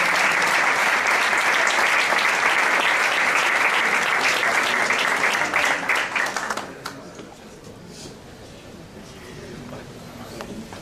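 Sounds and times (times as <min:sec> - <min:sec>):
audience applause: 0:00.0 - 0:07.0.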